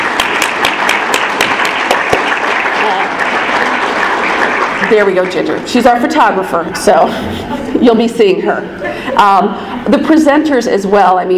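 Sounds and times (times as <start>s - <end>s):
large audience clapping: 0.0s - 5.8s
speech: 4.9s - 11.3s
laughter: 6.6s - 10.0s.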